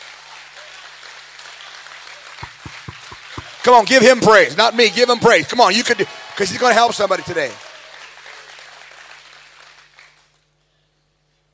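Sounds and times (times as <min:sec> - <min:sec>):
audience clapping: 0:00.0 - 0:04.4, 0:05.5 - 0:10.4
heavy thumps: 0:02.4 - 0:03.6
speech: 0:03.6 - 0:07.6.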